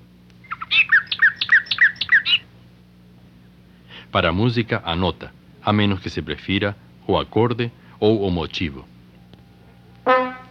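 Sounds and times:
faint low hum: 0.0 - 10.5
exotic bird trilling: 0.4 - 2.5
speech: 4.1 - 8.9.

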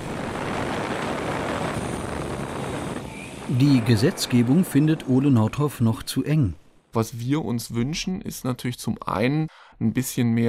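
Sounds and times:
parcel delivery drone propellers whirring in flight: 0.0 - 4.9
speech: 3.5 - 10.4.

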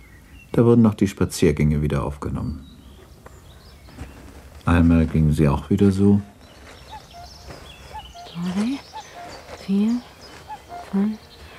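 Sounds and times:
speech: 0.5 - 2.7, 4.7 - 6.3, 9.7 - 10.1, 10.9 - 11.2
common cuckoo calling: 5.6 - 11.5.

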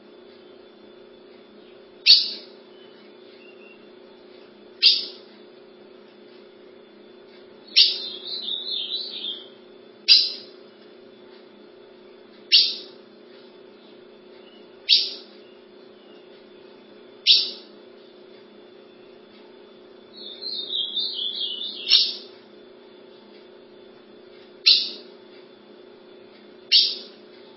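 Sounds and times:
Ultramarine grosbeak call notes: 2.0 - 3.9, 7.7 - 10.5, 12.5 - 13.0, 14.4 - 16.3, 17.2 - 17.7, 20.1 - 22.4, 24.6 - 25.1, 26.7 - 27.2.

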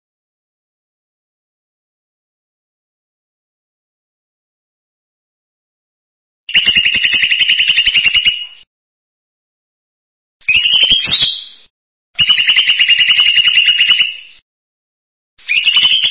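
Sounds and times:
bird song with trilled phrases: 6.5 - 8.7, 10.4 - 14.4, 15.4 - 16.0.

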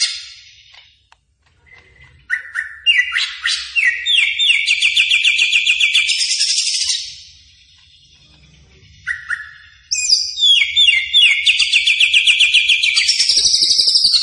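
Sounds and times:
greater green leafbird song: 0.0 - 14.2.

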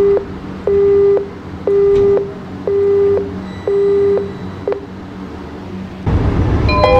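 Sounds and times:
metro train door-closing warning beeps: 0.0 - 4.9
metro train departing toward Canal de San Juan station: 1.3 - 6.9.

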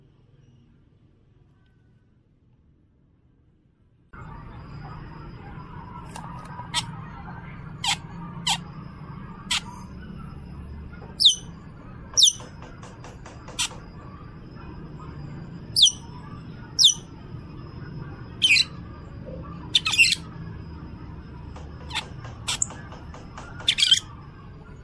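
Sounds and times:
bird singing: 4.2 - 24.8.

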